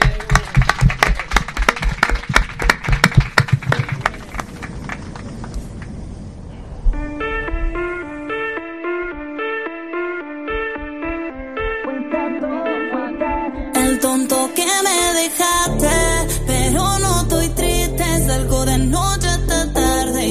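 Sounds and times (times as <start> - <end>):
applause: 0.0 - 5.6
bright electronic melody of high tones: 7.0 - 20.2.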